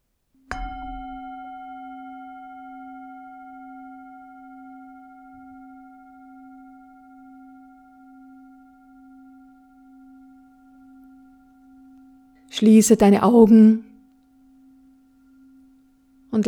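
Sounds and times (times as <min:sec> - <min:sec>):
singing bowl gong: 0:00.5 - 0:12.5, 0:13.9 - 0:16.4
speech: 0:12.6 - 0:13.9.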